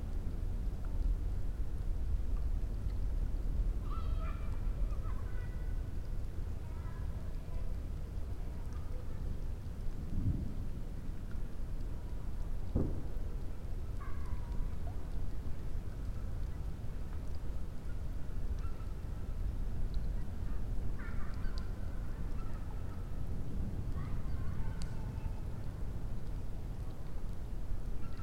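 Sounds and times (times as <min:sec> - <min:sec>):
campfire crackling: 0:00.0 - 0:28.2
raindrops: 0:00.0 - 0:28.2
child: 0:03.7 - 0:09.7, 0:13.5 - 0:15.2, 0:18.4 - 0:19.2, 0:20.4 - 0:25.9, 0:28.0 - 0:28.2
fireworks: 0:12.7 - 0:13.2.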